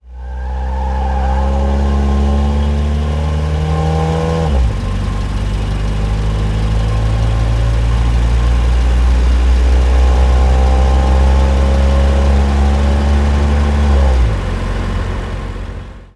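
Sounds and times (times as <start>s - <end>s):
car: 0.0s - 16.1s.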